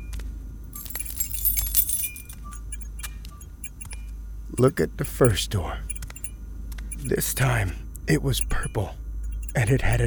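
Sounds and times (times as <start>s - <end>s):
keys jangling as a key is grabbed: 0.8s - 2.4s
speech: 4.6s - 5.9s, 7.0s - 10.0s.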